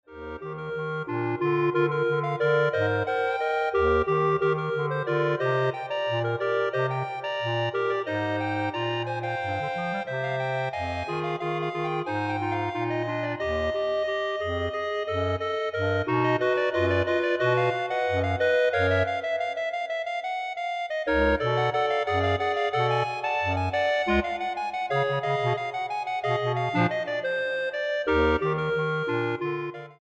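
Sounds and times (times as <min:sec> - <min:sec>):
clarinet ensemble playing: 0:00.3 - 0:19.9, 0:21.1 - 0:29.9.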